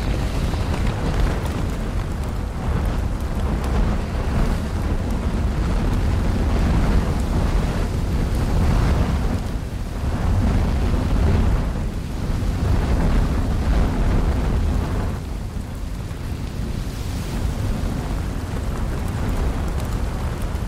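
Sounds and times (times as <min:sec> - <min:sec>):
lava fire, molten rock rumbling and crackling: 0:00.0 - 0:20.6.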